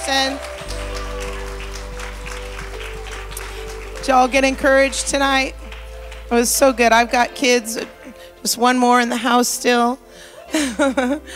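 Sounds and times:
audience clapping: 0:00.0 - 0:08.1
sustained low hum: 0:00.0 - 0:11.2
speech: 0:00.1 - 0:00.8, 0:04.0 - 0:05.6, 0:06.3 - 0:11.3
laughter: 0:10.4 - 0:11.3.

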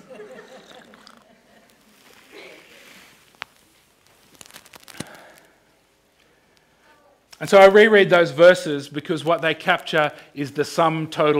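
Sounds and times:
laughter: 0:00.0 - 0:01.9
person slurping a hot drink: 0:00.3 - 0:01.3, 0:02.0 - 0:03.5
speech: 0:07.4 - 0:11.3.

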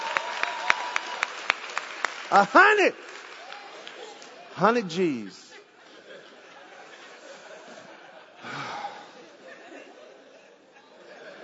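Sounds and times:
audience clapping: 0:00.0 - 0:05.4
speech: 0:02.3 - 0:03.1, 0:04.6 - 0:05.4
laughter: 0:04.7 - 0:11.4.

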